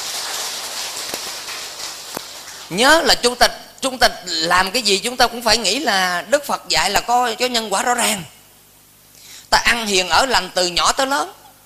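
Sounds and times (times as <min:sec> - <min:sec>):
round of applause from a crowd: 0:00.0 - 0:02.7
speech: 0:02.7 - 0:08.4, 0:09.5 - 0:11.4.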